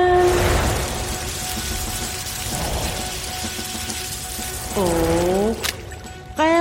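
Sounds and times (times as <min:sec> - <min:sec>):
water spraying from garden hose: 0:00.0 - 0:06.5.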